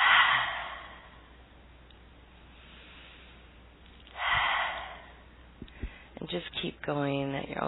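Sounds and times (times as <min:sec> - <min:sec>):
deep breathing: 0:00.0 - 0:01.4, 0:02.5 - 0:06.2
speech: 0:06.3 - 0:07.6.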